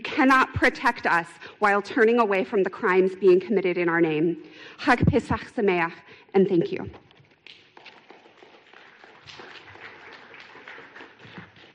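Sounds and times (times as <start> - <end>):
speech: 0.2 - 7.0
audience clapping: 7.1 - 11.7.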